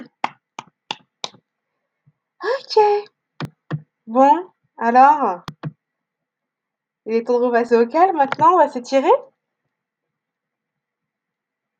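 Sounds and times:
group clapping hands: 0.0s - 1.4s
speech: 2.7s - 3.2s, 4.1s - 5.5s, 7.1s - 9.3s.

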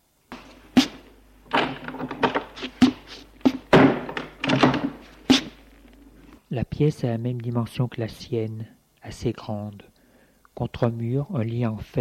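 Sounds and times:
heavy wooden thunks and knocks: 0.3s - 5.6s
rattling and shuffling: 0.3s - 6.4s
door slamming: 0.4s - 5.5s
speech: 6.8s - 9.9s, 10.6s - 11.9s.

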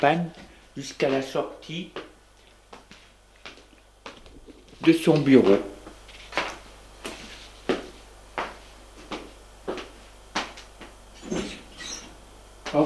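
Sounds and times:
speech: 0.0s - 2.0s, 4.8s - 5.8s
door closing: 11.2s - 12.2s.

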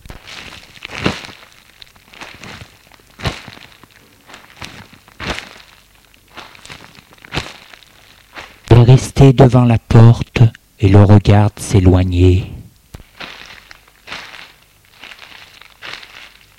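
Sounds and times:
footsteps in soft snow: 0.0s - 8.7s, 13.0s - 16.5s
speech: 9.0s - 10.2s, 10.8s - 12.5s.

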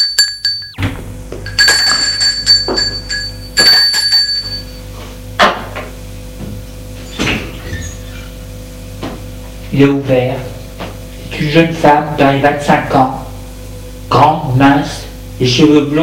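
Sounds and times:
doorbell chime: 0.0s - 0.8s, 1.5s - 4.9s
speech: 9.8s - 10.5s, 11.4s - 13.2s, 14.2s - 16.0s.

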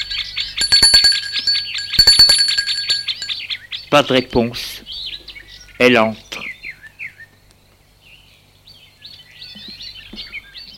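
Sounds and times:
doorbell ringing with metallic trilling: 0.0s - 3.4s
speech: 3.9s - 4.8s, 5.8s - 6.2s.

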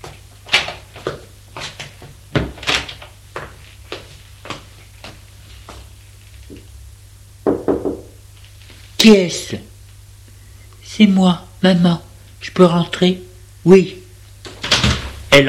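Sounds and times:
faint steady hum: 0.0s - 15.4s
knocking on a bedroom door: 7.4s - 8.2s
speech: 9.0s - 9.7s, 11.0s - 14.0s.

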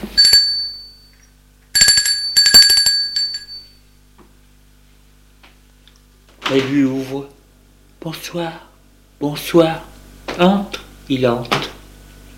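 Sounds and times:
doorbell ringing: 0.2s - 1.2s, 1.8s - 3.8s
speech: 8.2s - 11.6s.

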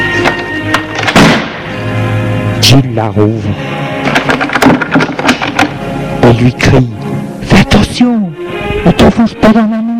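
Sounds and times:
apartment door slamming shut: 0.2s - 1.6s, 4.1s - 5.7s
speech: 2.8s - 3.8s, 6.3s - 7.0s, 7.8s - 9.8s.

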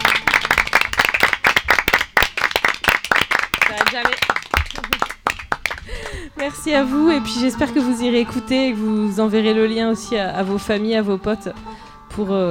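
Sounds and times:
audience applause: 0.0s - 6.2s
speech: 3.7s - 5.0s, 5.9s - 12.4s.

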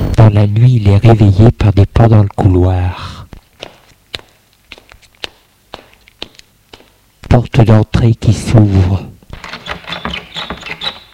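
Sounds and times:
speech: 0.4s - 3.2s, 7.3s - 9.7s
footsteps in a hallway at night: 3.3s - 7.1s, 9.3s - 11.1s.

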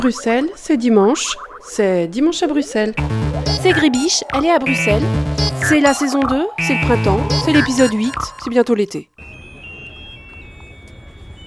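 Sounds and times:
speech: 0.0s - 9.3s
shrill electronic tunes from fairground inflatable animal boats: 3.0s - 8.6s.

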